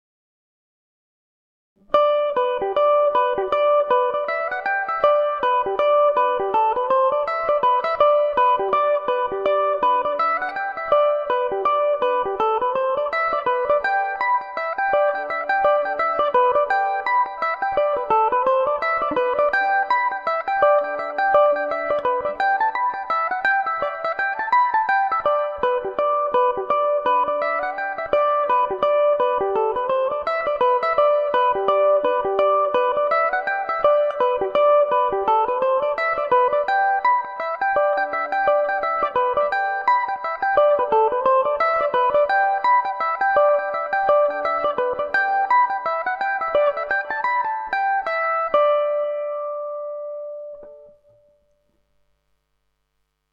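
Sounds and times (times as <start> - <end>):
Irish mandolin in G major: 1.8 - 52.6.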